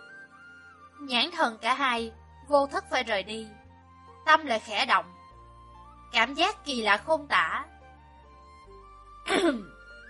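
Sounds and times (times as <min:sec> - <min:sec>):
speech: 0:01.0 - 0:03.6, 0:04.2 - 0:05.2, 0:06.1 - 0:07.8, 0:09.2 - 0:09.7
light cough: 0:09.3 - 0:09.8
throat clearing: 0:09.3 - 0:09.8.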